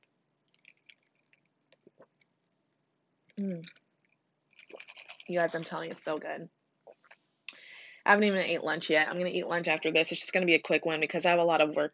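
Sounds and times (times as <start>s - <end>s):
person sipping El Cafe: 0.5s - 2.6s, 3.3s - 5.8s, 6.8s - 7.6s
speech: 3.4s - 3.8s, 5.3s - 6.6s, 8.1s - 11.9s.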